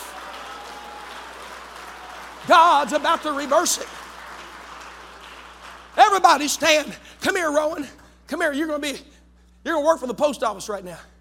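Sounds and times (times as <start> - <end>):
audience clapping hands: 0.0 - 7.8
speech: 2.4 - 4.1, 6.1 - 11.1.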